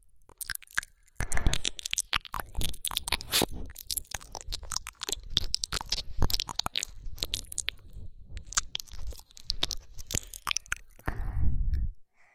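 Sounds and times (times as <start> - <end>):
ear licking: 0.2 - 11.2
breathing sighs: 10.3 - 12.3.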